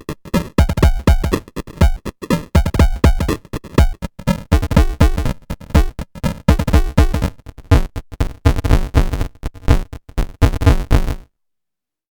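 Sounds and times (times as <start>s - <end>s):
Nunomo Qun Mk2 sample drums through a bitcrusher: 0.0s - 11.2s.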